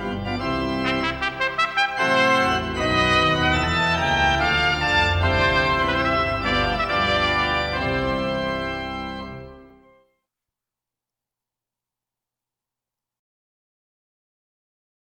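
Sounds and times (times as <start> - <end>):
wedding march music: 0.0 - 10.0.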